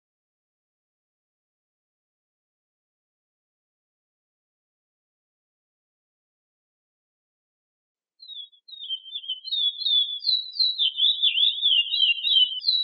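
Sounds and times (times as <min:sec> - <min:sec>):
chestnut-bellied seed finch singing: 0:08.2 - 0:12.8.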